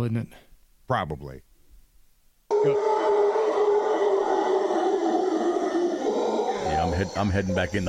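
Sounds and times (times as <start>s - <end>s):
speech: 0.0s - 1.5s, 2.6s - 3.0s, 6.8s - 7.8s
howler monkey calls: 2.5s - 7.8s.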